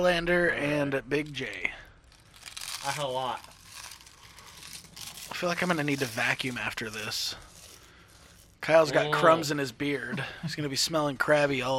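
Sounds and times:
speech: 0.0 - 1.8, 2.8 - 3.6, 5.4 - 7.5, 8.6 - 11.7
people crunching chips: 1.3 - 9.2
person murmuring: 8.8 - 10.6.

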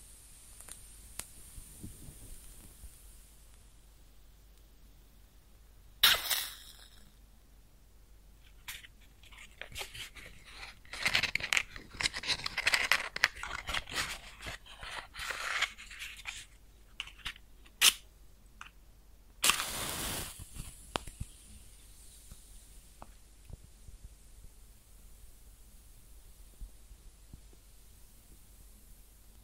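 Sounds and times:
match crackling: 0.0 - 3.8, 8.4 - 28.6
thin soft hiss: 0.0 - 29.4
match struck and flaring: 0.5 - 1.7, 6.0 - 7.0, 9.5 - 18.0, 19.4 - 22.4.

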